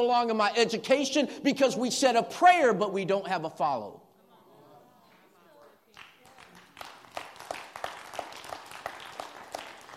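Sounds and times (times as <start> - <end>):
speech: 0.0 - 4.0
audience clapping: 5.6 - 9.9.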